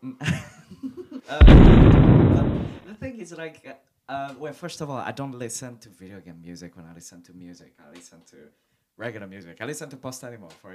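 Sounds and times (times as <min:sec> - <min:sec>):
speech: 0:01.3 - 0:01.7, 0:03.2 - 0:10.7
bomb explosion: 0:01.4 - 0:02.8.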